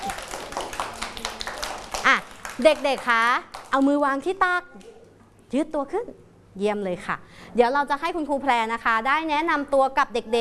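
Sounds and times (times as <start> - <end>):
children clapping to welcome a teacher: 0.0 - 4.0
speech: 2.0 - 4.9, 5.5 - 10.4.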